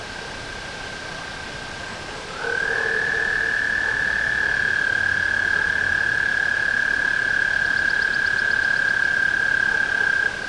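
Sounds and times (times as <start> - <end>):
tree frog trilling: 2.3 - 10.4.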